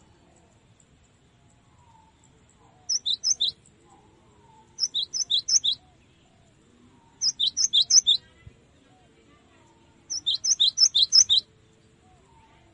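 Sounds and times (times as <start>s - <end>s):
cinereous tit song for training cage birds: 2.9s - 3.6s, 4.8s - 5.8s, 7.2s - 8.2s, 10.1s - 11.4s.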